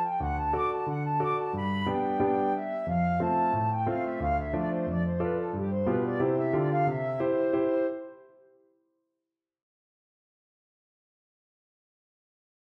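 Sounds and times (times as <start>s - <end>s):
flute playing a hornpipe: 0.0s - 8.5s.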